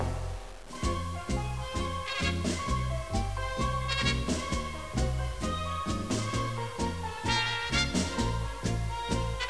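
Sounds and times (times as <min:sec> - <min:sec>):
tango music: 0:00.0 - 0:09.4.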